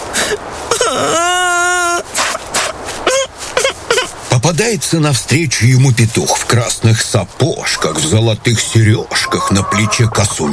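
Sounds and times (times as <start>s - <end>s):
speech: 0.3s - 1.3s, 4.5s - 10.5s
voice imitating bitter crying of a hare: 0.7s - 4.1s.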